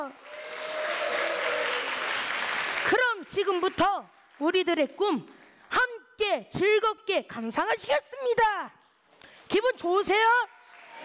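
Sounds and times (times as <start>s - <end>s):
speech: 0.0s - 0.4s, 2.9s - 5.4s, 6.2s - 8.8s, 9.5s - 11.0s
audience applause: 0.0s - 4.4s.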